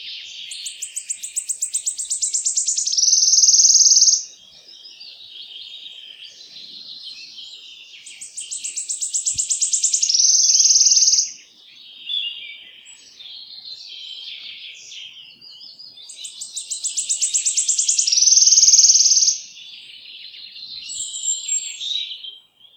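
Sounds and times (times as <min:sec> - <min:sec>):
wood warbler song ending in shivering high trill: 0:00.0 - 0:22.7.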